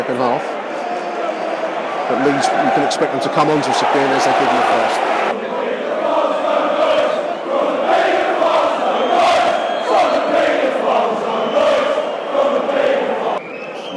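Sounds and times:
speech: 0.1 - 0.5, 2.1 - 5.4
football crowd roaring in appreciation: 0.5 - 13.9.

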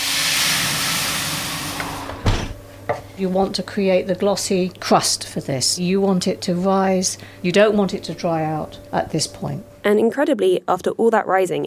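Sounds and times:
sizzle: 0.0 - 2.2
steam hissing as water hits a hot oven: 0.0 - 2.4
thump: 2.1 - 2.6
speech: 3.2 - 11.6.

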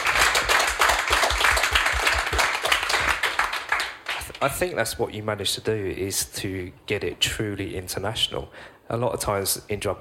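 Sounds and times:
audience applause: 0.0 - 4.4
speech: 4.4 - 9.9.

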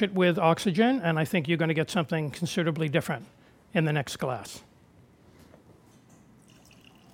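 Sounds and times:
speech: 0.0 - 4.7
Bordeaux wine sloshing and gurgling in a plain beer pitcher: 6.4 - 7.1
liquid dripping and trickling: 6.4 - 7.1.

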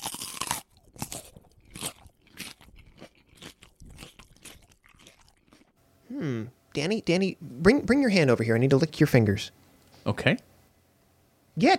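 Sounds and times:
biting into crunchy food and chewing: 0.0 - 5.8
speech: 6.1 - 10.5, 11.6 - 11.7.

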